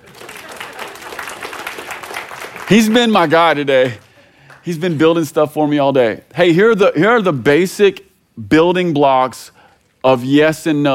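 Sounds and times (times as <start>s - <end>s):
room full of people clapping: 0.0s - 5.2s
speech: 2.7s - 4.0s, 4.7s - 10.9s.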